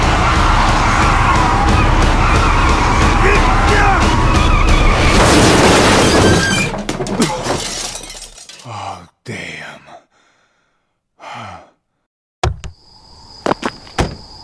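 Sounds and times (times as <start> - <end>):
car engine roaring: 0.0 - 5.1
car crunching impact with a deer: 5.0 - 8.6
debris: 5.0 - 8.7.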